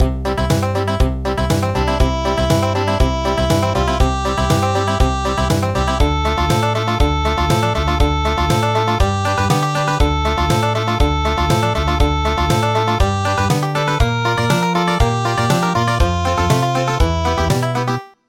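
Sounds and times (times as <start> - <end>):
country music: 0.0 - 18.2.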